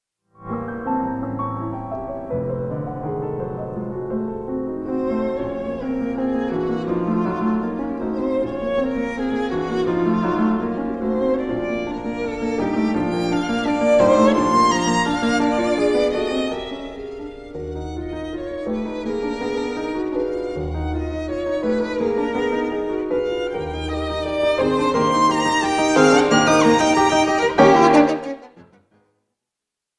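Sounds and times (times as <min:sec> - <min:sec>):
sonata for violin or cello and piano, fourth movement: 0:00.8 - 0:28.7.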